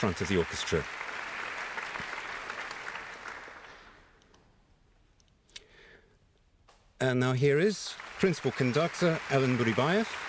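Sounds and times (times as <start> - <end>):
speech: 0.0 - 1.1, 7.0 - 10.2
concert audience applause: 0.0 - 4.1, 7.6 - 10.2.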